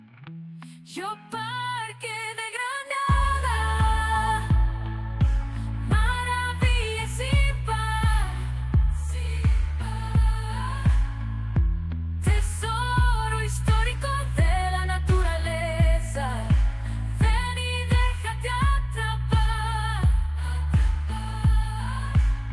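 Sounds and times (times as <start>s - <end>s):
song chorus: 2.9s - 22.5s.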